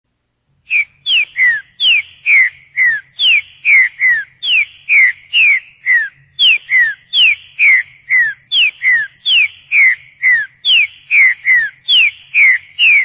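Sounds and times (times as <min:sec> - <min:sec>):
Rebicador song whistles falling in pitch: 0:00.7 - 0:13.0.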